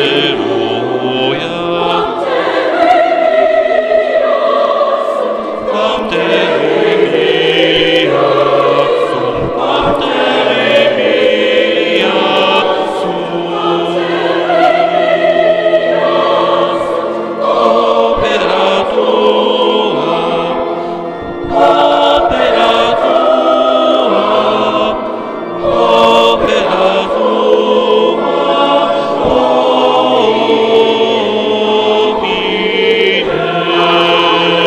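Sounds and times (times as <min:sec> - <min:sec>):
SATB choir singing a motet: 0:00.0 - 0:34.6
organ: 0:00.0 - 0:34.6.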